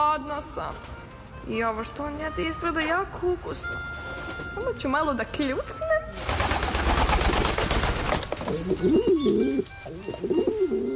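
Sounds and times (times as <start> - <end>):
speech: 0.0 - 6.3, 8.5 - 10.9
wings fluttering: 6.2 - 9.7
carrier pigeon cooing: 8.5 - 10.9.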